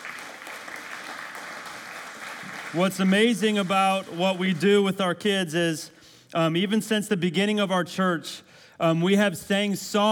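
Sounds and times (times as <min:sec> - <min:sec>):
church audience applause: 0:00.0 - 0:04.6
speech: 0:02.7 - 0:10.1.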